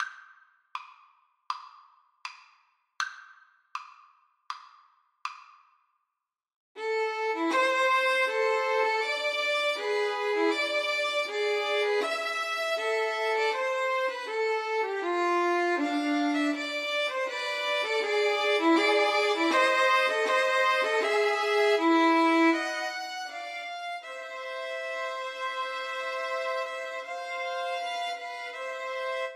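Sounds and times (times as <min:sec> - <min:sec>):
violin trio playing: 0:06.8 - 0:29.3.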